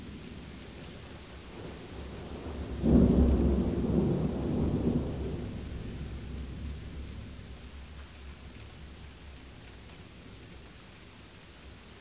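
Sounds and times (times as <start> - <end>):
rain: 0.0 - 11.9
thunder: 1.6 - 7.4.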